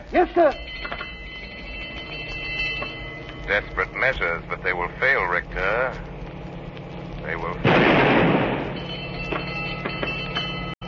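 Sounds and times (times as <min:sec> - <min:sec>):
speech: 0:00.1 - 0:00.6, 0:03.5 - 0:06.1, 0:07.2 - 0:08.3
low mechanical engine drone: 0:00.8 - 0:10.8
blank gunshot fired as warning: 0:07.7 - 0:08.7.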